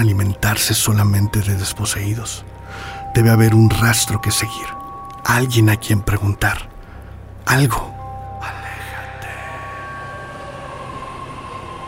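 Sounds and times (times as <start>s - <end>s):
speech: 0.0s - 6.7s, 7.4s - 8.6s
underground metro train at Plaza del Callao rumbling: 8.6s - 11.8s.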